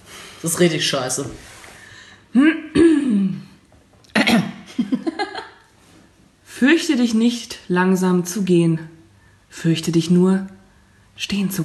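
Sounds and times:
speech: 0:00.4 - 0:01.5, 0:02.3 - 0:02.9, 0:06.6 - 0:10.6, 0:11.2 - 0:11.6
throat clearing: 0:02.7 - 0:03.5.

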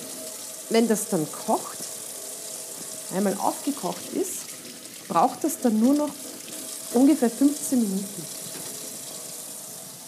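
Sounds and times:
running tap water: 0:00.0 - 0:10.0
washing up dishes: 0:00.0 - 0:10.0
speech: 0:00.7 - 0:01.9, 0:03.1 - 0:04.5, 0:05.1 - 0:06.3, 0:06.9 - 0:08.4.

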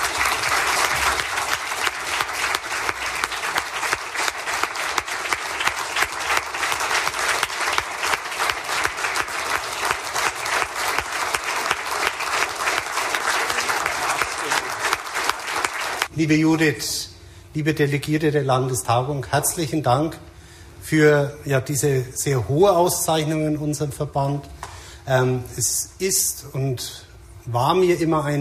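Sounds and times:
standing applause from assembly delegates: 0:00.0 - 0:16.1
speech: 0:16.2 - 0:20.3, 0:20.9 - 0:28.3.

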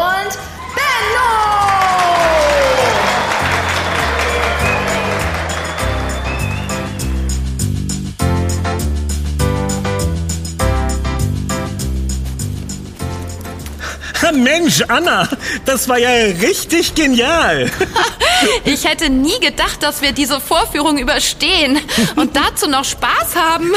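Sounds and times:
audience applause: 0:00.5 - 0:07.6
laughter: 0:00.6 - 0:07.2, 0:17.4 - 0:18.9
loud rhythmic music with a steady bass beat: 0:02.7 - 0:13.9
speech: 0:14.6 - 0:23.7.

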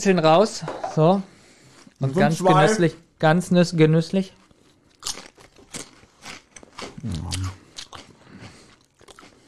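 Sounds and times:
speech: 0:00.0 - 0:01.3, 0:02.0 - 0:04.4, 0:07.0 - 0:07.6
biting into a crunchy spicy snack: 0:04.4 - 0:09.4
wet crackly chewing: 0:04.4 - 0:09.4.

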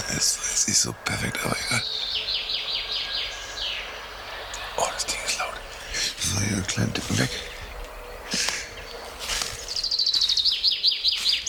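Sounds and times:
chaffinch scratchy calls: 0:00.0 - 0:11.4
chaffinch singing: 0:00.0 - 0:11.4
speech: 0:00.2 - 0:02.2, 0:06.4 - 0:07.6.

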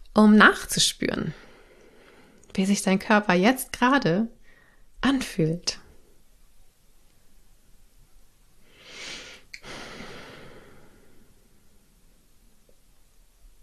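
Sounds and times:
faint steady hiss: 0:00.0 - 0:13.6
speech: 0:00.2 - 0:01.4, 0:02.6 - 0:04.4, 0:05.0 - 0:05.8
deep breath: 0:01.4 - 0:02.4, 0:04.4 - 0:04.9, 0:08.6 - 0:12.0.

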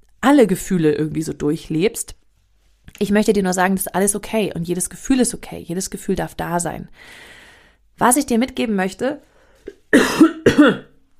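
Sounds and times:
speech: 0:00.3 - 0:02.2, 0:03.0 - 0:07.4, 0:08.0 - 0:10.9
person clearing throat: 0:09.7 - 0:11.0.

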